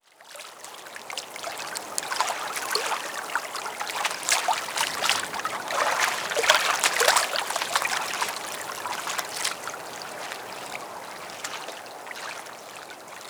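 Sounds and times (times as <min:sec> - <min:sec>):
quiet water at docks: 0:00.0 - 0:13.2.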